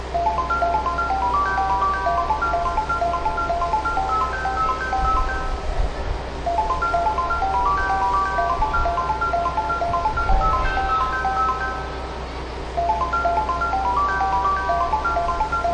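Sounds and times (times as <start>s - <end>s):
melody: 0.1s - 15.7s.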